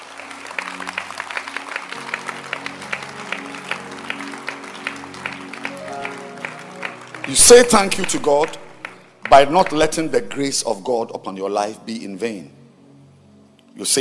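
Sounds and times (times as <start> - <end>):
audience clapping: 0.0 - 11.0
speech: 7.3 - 8.6, 9.3 - 12.6, 13.8 - 13.9.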